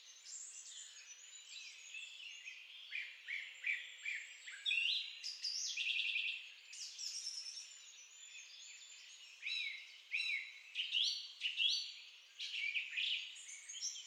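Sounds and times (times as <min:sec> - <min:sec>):
song thrush singing: 0:00.0 - 0:14.0.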